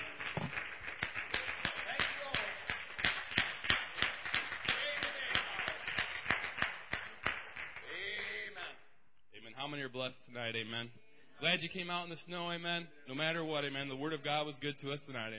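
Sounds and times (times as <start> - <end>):
audience applause: 0.0 - 8.2
speech: 9.8 - 15.3.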